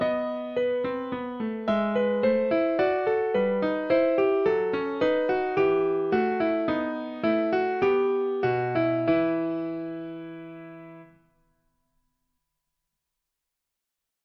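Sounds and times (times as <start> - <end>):
bourree on piano: 0.0 - 11.3.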